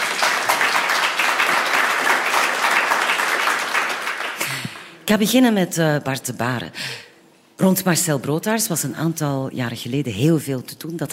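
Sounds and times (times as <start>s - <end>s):
audience applause: 0.0s - 5.0s
speech: 5.1s - 7.0s, 7.6s - 11.1s.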